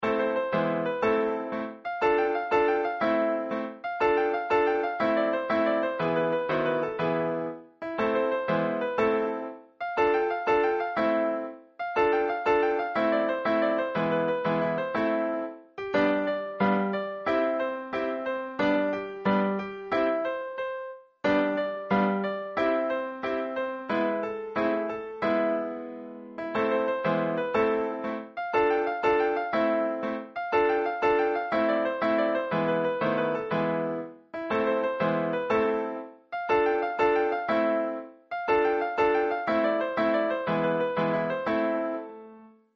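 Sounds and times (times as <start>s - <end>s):
klezmer music: 0.0s - 42.4s.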